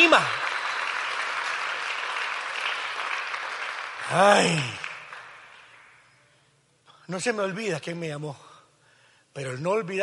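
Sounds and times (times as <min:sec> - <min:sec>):
loud applause from audience: 0:00.0 - 0:06.2
speech: 0:00.1 - 0:00.4, 0:04.1 - 0:04.8, 0:07.1 - 0:08.5, 0:09.3 - 0:10.0.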